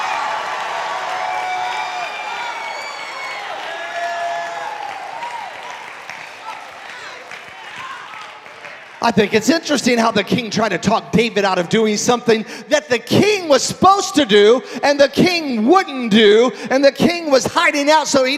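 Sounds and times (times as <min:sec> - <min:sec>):
audience roaring praise: 0:00.0 - 0:09.4
speech: 0:09.0 - 0:18.3.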